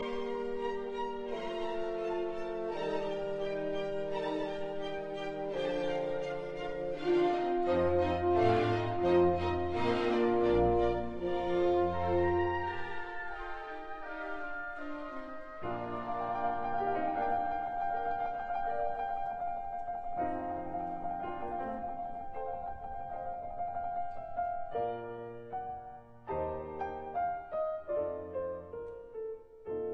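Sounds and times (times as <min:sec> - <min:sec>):
concerto for two pianos, andante: 0:00.0 - 0:29.9.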